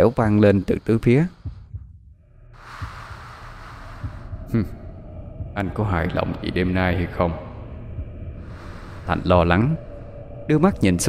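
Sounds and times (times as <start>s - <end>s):
speech: 0.0s - 1.4s, 4.5s - 4.8s, 5.6s - 7.4s, 9.1s - 9.9s, 10.5s - 11.0s
heartbeat: 0.3s - 11.0s
breathing: 1.3s - 5.1s, 8.3s - 10.2s.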